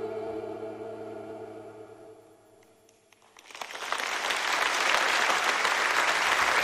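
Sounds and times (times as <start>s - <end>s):
audience applause: 3.2s - 6.6s.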